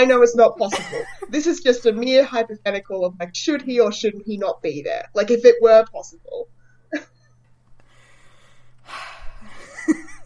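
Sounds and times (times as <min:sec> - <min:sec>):
speech: 0:00.0 - 0:07.1
person taking a deep breath: 0:07.8 - 0:09.6.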